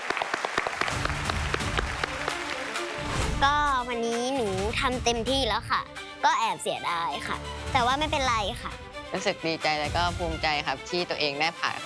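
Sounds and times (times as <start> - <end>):
applause: 0.0 - 3.1
speech: 3.4 - 11.8.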